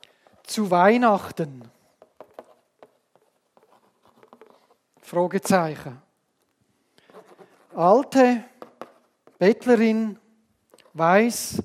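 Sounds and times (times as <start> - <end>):
speech: 0.5 - 1.8, 5.1 - 6.0, 7.8 - 8.5, 9.4 - 10.2, 11.0 - 11.6
pen writing on a cardboard box: 2.0 - 4.8, 7.0 - 7.8.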